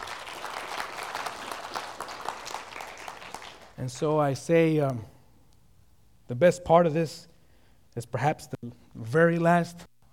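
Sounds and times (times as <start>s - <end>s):
church audience applause: 0.0s - 4.1s
speech: 3.8s - 5.1s, 6.3s - 7.3s, 8.0s - 9.9s.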